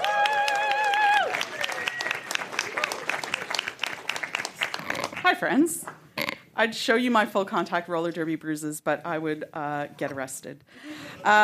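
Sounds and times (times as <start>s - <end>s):
audience cheering: 0.0s - 4.4s
audience applause at a Science Week event: 0.0s - 5.2s
speech: 5.4s - 6.0s, 6.6s - 11.4s.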